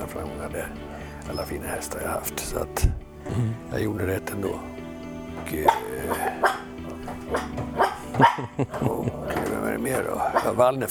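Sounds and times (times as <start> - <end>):
speech: 0.2 - 4.8, 5.4 - 6.5, 7.3 - 7.6, 8.4 - 10.8
Yorkshire terrier barking: 5.7 - 8.6, 10.1 - 10.8
laughter: 8.0 - 9.8.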